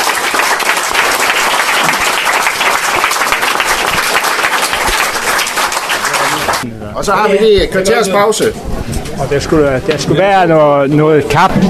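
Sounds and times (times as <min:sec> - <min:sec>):
audience applause: 0:00.0 - 0:06.6
speech: 0:07.0 - 0:11.6.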